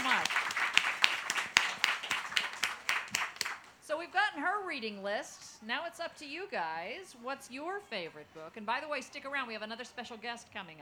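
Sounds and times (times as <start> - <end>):
audience applause: 0.0 - 3.8
speech: 4.8 - 10.8.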